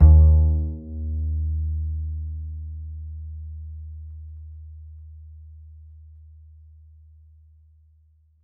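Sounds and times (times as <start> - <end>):
upright acoustic bass in D: 0.0 - 4.6.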